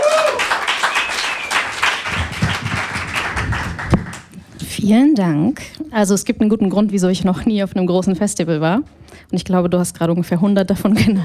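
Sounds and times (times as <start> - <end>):
audience applause: 0.0 - 4.3
speech: 4.8 - 11.2.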